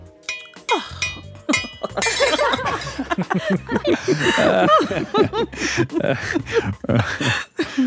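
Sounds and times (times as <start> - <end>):
wine glass knocked over and clinking: 0.3 - 3.1
people laughing: 1.9 - 7.8.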